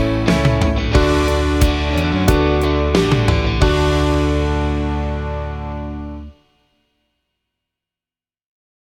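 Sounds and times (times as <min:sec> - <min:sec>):
graduation background music: 0:00.0 - 0:06.6.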